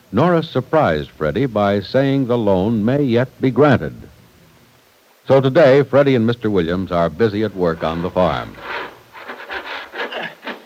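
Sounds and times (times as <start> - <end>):
speech: 0.1 - 4.1, 5.3 - 8.8
hand saw cutting wood: 7.7 - 10.6.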